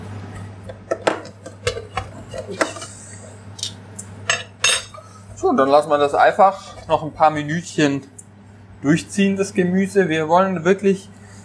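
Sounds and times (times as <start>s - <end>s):
dishes and cutlery clattering: 0.7s - 3.1s, 4.3s - 5.1s
speech: 5.4s - 8.1s, 8.8s - 11.2s.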